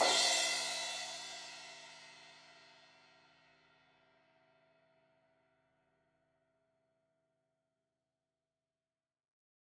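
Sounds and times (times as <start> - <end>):
16-inch crash cymbal hit on the edge: 0.0 - 1.8.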